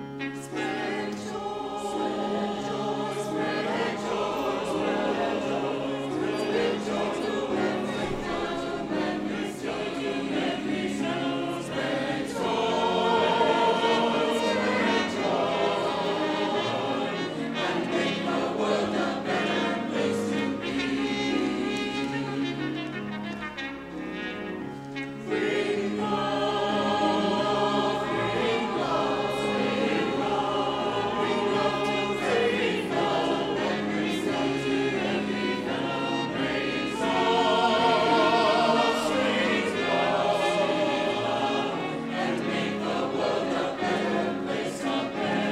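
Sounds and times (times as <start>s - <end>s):
chancel choir singing an anthem: 0.2s - 23.3s, 24.9s - 45.5s.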